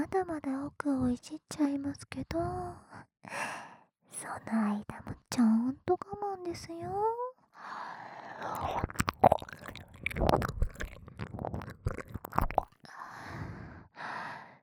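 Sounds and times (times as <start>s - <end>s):
speech: 0.2s - 9.4s
breathing deep in the ear: 3.3s - 3.9s, 7.6s - 8.7s, 12.9s - 14.6s
tongue squelching deep in the ear: 8.5s - 12.9s.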